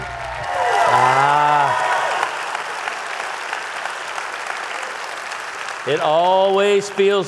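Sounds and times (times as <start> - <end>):
vocal shout: 0.0 - 2.3
audience applause at a church Father's Day gathering: 0.0 - 7.2
speech: 5.9 - 7.2.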